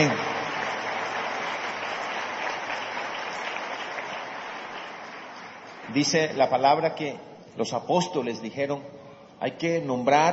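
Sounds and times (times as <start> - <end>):
speech: 0.0 - 0.3, 5.9 - 10.3
audience applause: 0.0 - 6.1.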